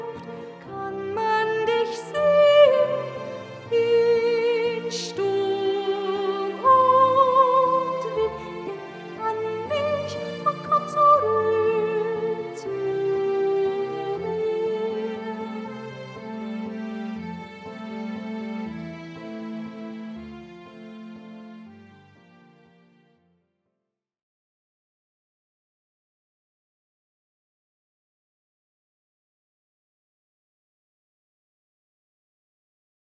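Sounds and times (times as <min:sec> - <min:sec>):
soprano singing: 0:00.0 - 0:18.8.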